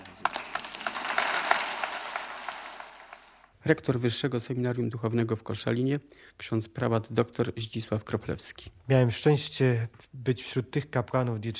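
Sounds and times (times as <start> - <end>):
audience applause: 0.0 - 3.5
speech: 3.7 - 11.5.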